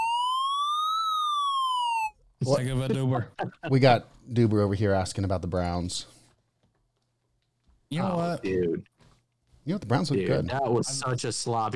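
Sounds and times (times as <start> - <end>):
electronic alarm siren sound effect: 0.0 - 2.2
speech: 2.4 - 6.2, 7.9 - 8.9, 9.6 - 11.7.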